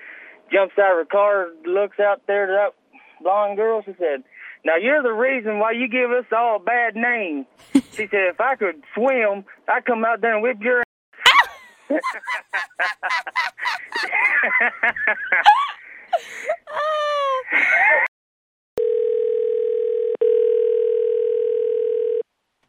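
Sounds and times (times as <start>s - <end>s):
speech: 0.5s - 10.8s, 11.9s - 18.1s
squeaky laughing vocal sounds: 7.6s - 8.1s, 11.2s - 14.5s, 15.4s - 18.0s
electronic ring tone on the phone line: 18.8s - 22.2s.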